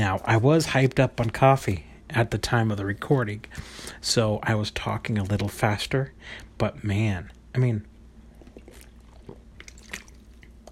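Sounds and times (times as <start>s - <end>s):
speech: 0.0s - 7.9s
drinking water: 8.3s - 10.7s.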